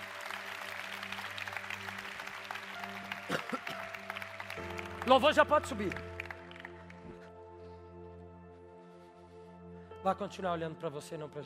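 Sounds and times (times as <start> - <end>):
audience clapping hands: 0.0 - 7.4
speech: 5.1 - 6.1, 10.0 - 11.4.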